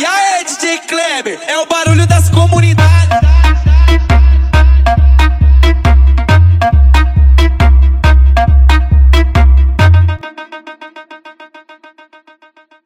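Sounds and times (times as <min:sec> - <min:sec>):
funk music with heavy bass: 0:01.7 - 0:10.3.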